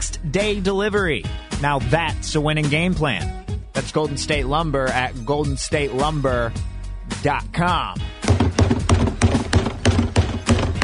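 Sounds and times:
speech: 0:00.2 - 0:08.8
bangs on a trash can: 0:08.2 - 0:10.8.

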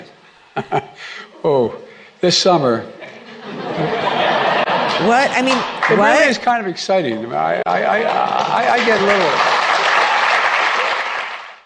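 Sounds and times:
laughter: 0:00.6 - 0:01.0, 0:03.0 - 0:06.1
speech: 0:00.6 - 0:04.0, 0:05.0 - 0:09.6
pity applause of many hands clapping: 0:04.8 - 0:06.4, 0:07.7 - 0:11.6.

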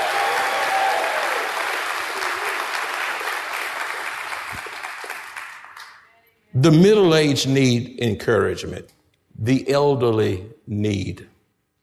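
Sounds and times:
audience clapping: 0:00.0 - 0:06.1
speech: 0:06.6 - 0:11.3.

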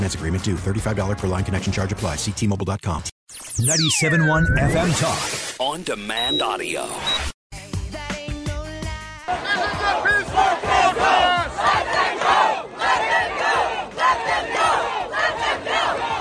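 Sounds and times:
speech: 0:00.1 - 0:07.3
protesters chanting in favor of Palestine at UT Austin: 0:09.3 - 0:16.2.

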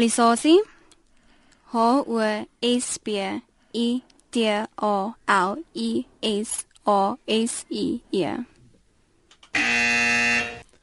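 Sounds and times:
speech: 0:00.0 - 0:00.7, 0:01.7 - 0:08.5
quiz buzzer: 0:09.5 - 0:10.7.

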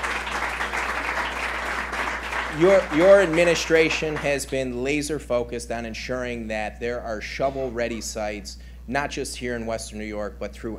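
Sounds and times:
round of applause: 0:00.0 - 0:04.5
speech: 0:02.6 - 0:10.7.

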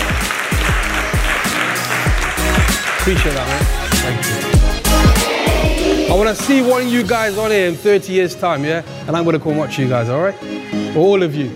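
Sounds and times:
audience applause: 0:00.0 - 0:06.7
speech: 0:03.1 - 0:05.1, 0:06.1 - 0:11.5.

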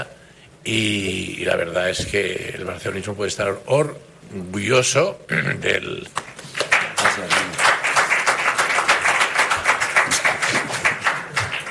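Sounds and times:
speech: 0:00.0 - 0:06.2
applause and clapping: 0:06.2 - 0:11.7.

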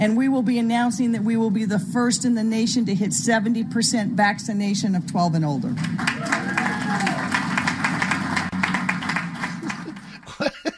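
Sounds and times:
speech: 0:00.0 - 0:07.1
crowd applauding: 0:05.8 - 0:10.5
excited whoops: 0:06.1 - 0:07.5
laughter: 0:09.4 - 0:10.7.

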